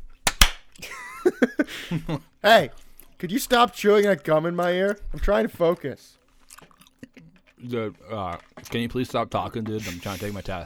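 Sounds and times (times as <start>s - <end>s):
film clapperboard clap: 0.0s - 0.7s
speech: 0.8s - 6.2s, 7.6s - 10.6s.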